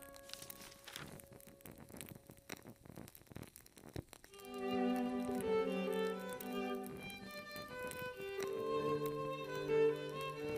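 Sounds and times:
soft ticks and crackles: 0.0s - 10.5s
sustained classical instrumental music: 4.4s - 10.5s.

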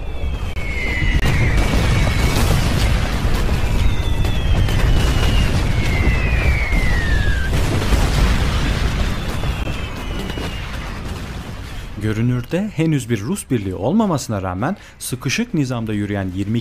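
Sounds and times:
descending whistles: 0.0s - 7.6s, 8.4s - 11.1s
artillery shell explosions: 0.3s - 12.8s
speech: 12.5s - 16.5s.

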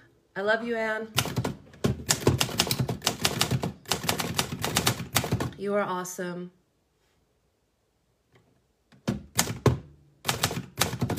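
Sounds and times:
speech: 0.4s - 1.4s, 5.6s - 6.6s
typewriter keystrokes typing out an affirmation: 1.2s - 5.6s, 9.0s - 11.1s.

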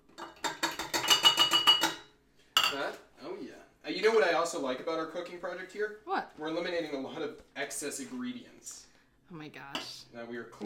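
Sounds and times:
utensils clattering against a bowl mixing confectioner's sugar: 0.1s - 2.9s
speech: 2.7s - 10.6s.

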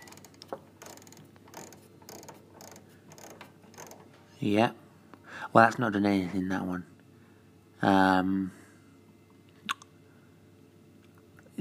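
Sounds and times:
mechanical timer dial being turned: 0.0s - 4.0s
speech: 4.4s - 4.8s, 5.5s - 6.9s, 7.8s - 8.6s.

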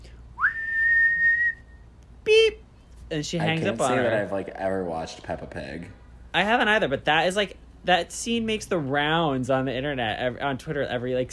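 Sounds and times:
person whistling through pursed lips: 0.4s - 1.9s
speech: 3.1s - 11.3s.

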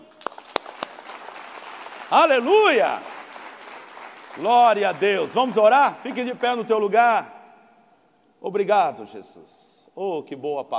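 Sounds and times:
audience applauding: 0.0s - 6.7s
speech: 2.1s - 3.1s, 4.4s - 7.4s, 8.4s - 10.7s.

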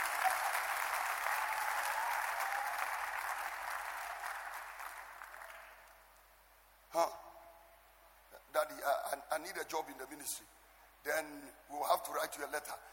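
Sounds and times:
audience clapping: 0.0s - 6.1s
speech: 7.0s - 7.2s, 8.8s - 12.9s.

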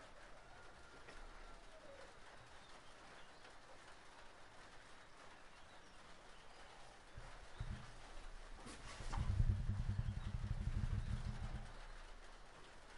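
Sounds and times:
hard rain on a roof: 0.0s - 12.9s
low rumble: 7.2s - 12.4s.

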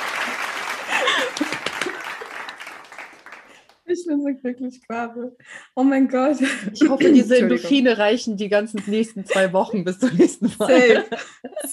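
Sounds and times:
laughter: 0.0s - 3.0s, 6.4s - 8.0s, 8.8s - 11.7s
crowd applauding: 0.0s - 3.8s
speech: 4.0s - 11.7s.

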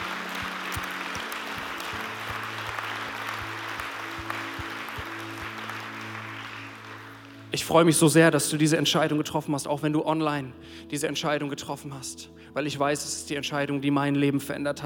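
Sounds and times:
audience applause: 0.0s - 7.5s
speech: 7.6s - 14.8s.

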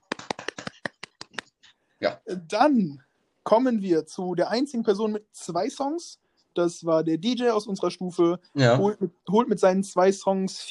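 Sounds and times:
small round of applause: 0.0s - 1.5s
speech: 2.0s - 10.6s.

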